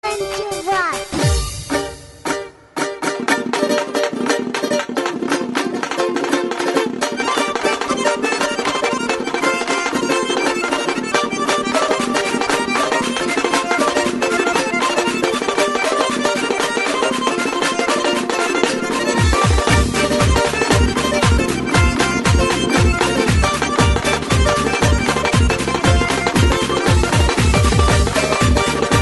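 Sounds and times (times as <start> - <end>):
lezginka dance music: 0.0 - 29.0.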